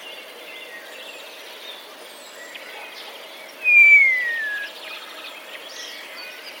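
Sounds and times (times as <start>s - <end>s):
common starling song mimicking sparrow sounds: 3.6s - 4.7s.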